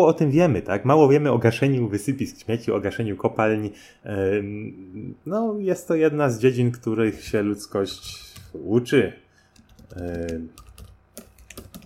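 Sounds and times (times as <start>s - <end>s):
speech: 0.0s - 9.2s, 9.9s - 10.6s
computer keyboard clicks typing a Skype password: 9.6s - 11.8s.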